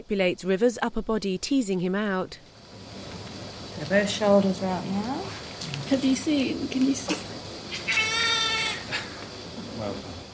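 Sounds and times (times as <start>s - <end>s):
speech: 0.1s - 2.6s, 3.8s - 7.8s, 9.8s - 10.1s
newborn baby crying: 7.8s - 8.9s.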